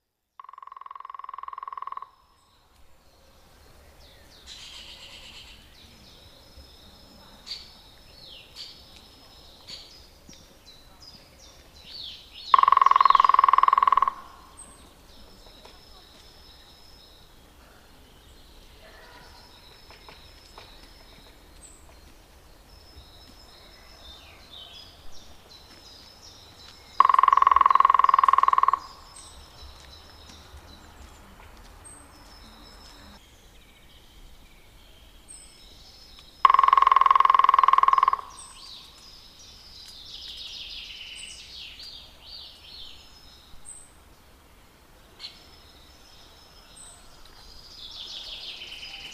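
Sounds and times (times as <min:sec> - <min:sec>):
green woodpecker: 0:00.4 - 0:03.4, 0:04.3 - 0:06.8, 0:07.4 - 0:17.3, 0:18.7 - 0:33.2, 0:35.4 - 0:42.0.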